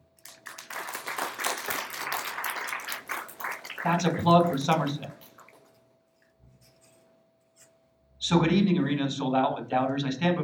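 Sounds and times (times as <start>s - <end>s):
audience applause: 0.2s - 5.7s
speech: 3.8s - 5.2s, 8.3s - 10.4s.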